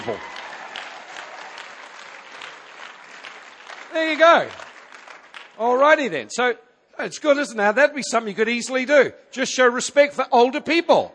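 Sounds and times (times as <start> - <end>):
speech: 0.0 - 0.4, 3.9 - 4.6, 5.6 - 11.1
audience applause: 0.0 - 5.6.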